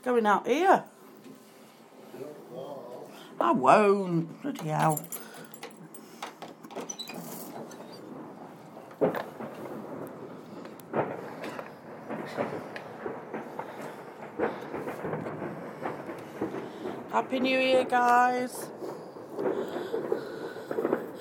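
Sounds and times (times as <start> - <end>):
speech: 0.0 - 0.9, 3.4 - 5.2, 17.2 - 18.7
distant fireworks exploding: 7.2 - 21.2.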